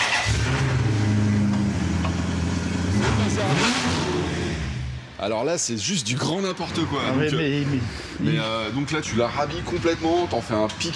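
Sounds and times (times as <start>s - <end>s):
2006 Maserati four-door engine starting and revving: 0.2s - 5.1s
speech: 5.2s - 10.9s.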